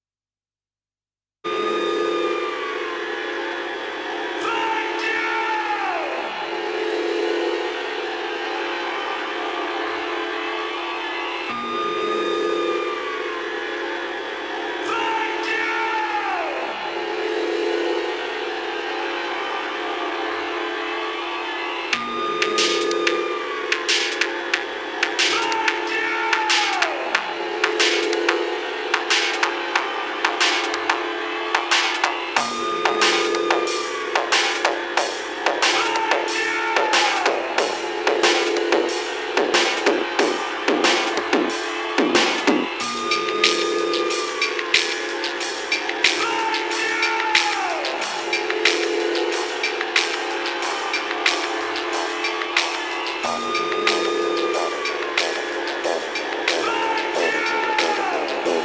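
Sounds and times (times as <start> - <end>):
techno music: 1.5 - 58.6.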